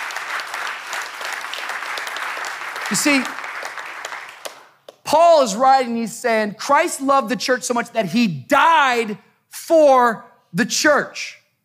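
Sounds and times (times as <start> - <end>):
audience clapping together: 0.0 - 5.2
speech: 2.9 - 3.4, 5.1 - 11.4.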